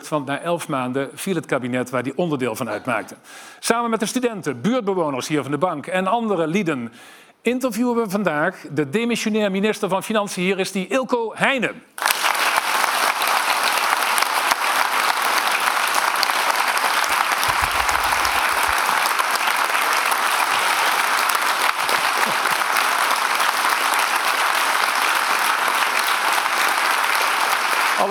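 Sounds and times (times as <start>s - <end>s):
speech: 0.1s - 12.1s
audience applause: 12.0s - 28.1s.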